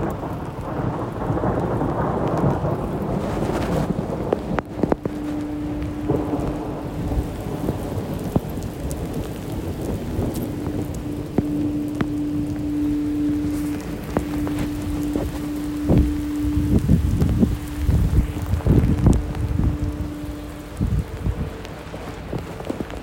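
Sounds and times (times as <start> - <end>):
rain at Coolhaven in Rotterdam: 0.0 - 23.0
thunder at Coolhaven in Rotterdam: 0.0 - 23.0.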